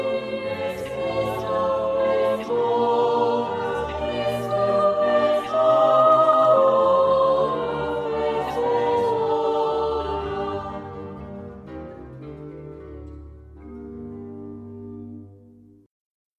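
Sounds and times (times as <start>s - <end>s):
soprano singing: 0.0s - 11.6s.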